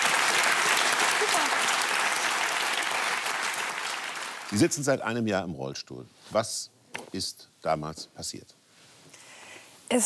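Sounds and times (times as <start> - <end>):
audience applause: 0.0 - 4.8
speech: 4.5 - 8.6.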